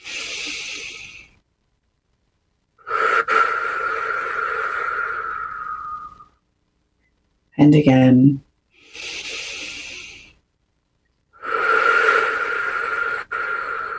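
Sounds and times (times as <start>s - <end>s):
person breathing deeply in through the nose and out through the mouth: 0.0s - 1.4s, 2.8s - 6.4s, 8.8s - 10.4s, 11.3s - 13.9s
speech: 7.6s - 8.4s.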